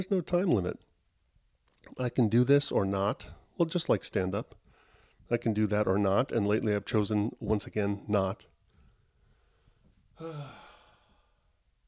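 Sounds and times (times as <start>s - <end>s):
speech: 0.0s - 0.9s, 1.8s - 4.6s, 5.3s - 8.5s, 10.2s - 10.6s
deep breath after a long stretch of talking: 8.8s - 11.5s.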